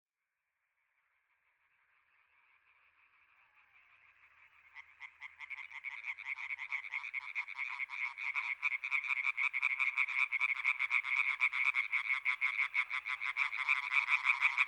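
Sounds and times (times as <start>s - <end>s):
European tree frogs croaking in chorus: 4.6s - 14.6s.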